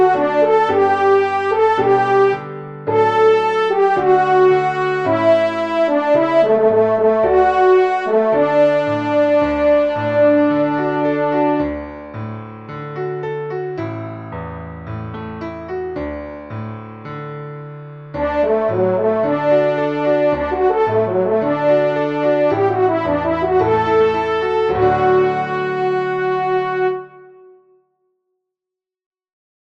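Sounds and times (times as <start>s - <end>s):
trumpet: 0.0s - 11.8s, 18.2s - 27.8s
piano: 0.0s - 27.9s.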